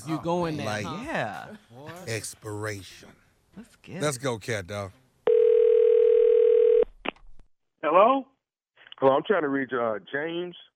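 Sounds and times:
speech: 0.0s - 5.0s, 7.8s - 8.3s, 9.0s - 10.7s
telephone line ringing: 5.3s - 6.9s.

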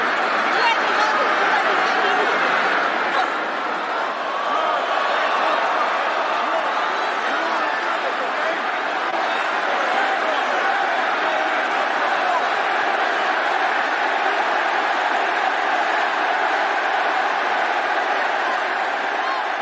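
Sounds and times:
arena crowd roaring and cheering at wrestling match: 0.0s - 19.6s.

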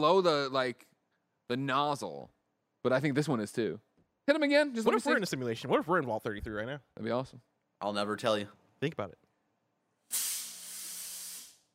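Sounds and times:
speech: 0.0s - 0.9s, 1.5s - 9.2s, 10.1s - 10.3s
fog machine hissing: 10.1s - 11.7s.

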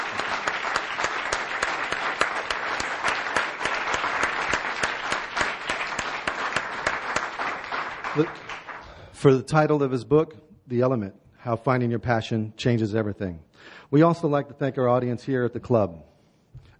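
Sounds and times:
audience applause at a club thanking Sir Ken Robinson: 0.0s - 9.0s
speech: 8.2s - 8.4s, 9.2s - 16.1s.

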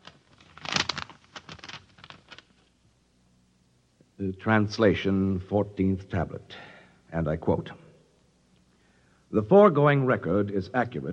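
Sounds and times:
envelope paper tearing and crinkling: 0.0s - 2.6s
speech: 4.2s - 7.8s, 9.3s - 11.1s.

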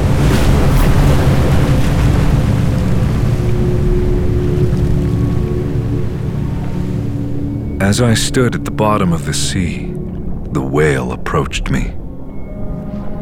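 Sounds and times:
rushing flood water: 0.0s - 9.6s
speech: 7.9s - 9.8s, 10.5s - 12.0s.

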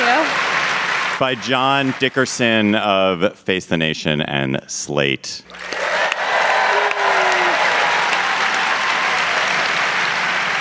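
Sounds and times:
live audience applause: 0.0s - 2.7s, 5.5s - 10.5s
speech: 1.2s - 6.0s.

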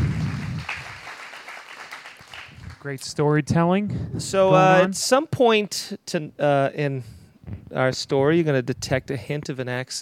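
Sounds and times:
audience applause: 0.0s - 2.8s
speech: 2.8s - 9.9s.

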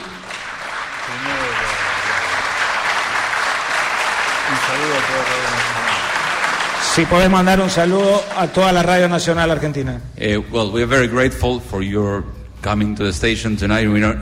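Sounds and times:
audience applause: 0.0s - 9.1s
speech: 7.0s - 14.2s.

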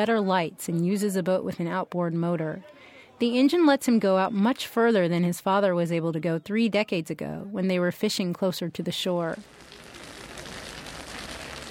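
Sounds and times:
speech: 0.0s - 9.6s
rain starting to fall: 9.3s - 11.6s.

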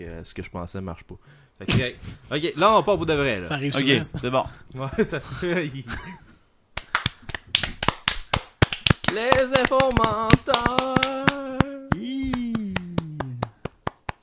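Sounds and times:
speech: 0.0s - 6.2s, 9.1s - 12.2s
hand clapping: 6.8s - 14.2s.

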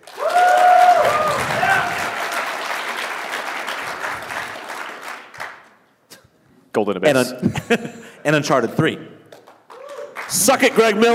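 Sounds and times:
audience applause vote: 0.0s - 5.8s, 9.4s - 11.1s
speech: 6.8s - 9.1s, 10.3s - 11.1s
laughter: 7.3s - 8.2s.

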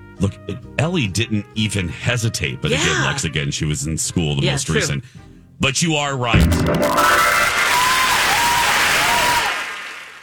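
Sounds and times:
speech: 0.2s - 7.6s
crowd applause and cheering: 6.4s - 10.2s.

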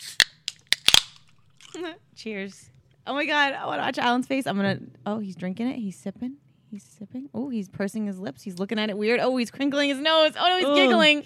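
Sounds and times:
drink cans being cracked open: 0.0s - 1.9s
speech: 1.8s - 11.2s.

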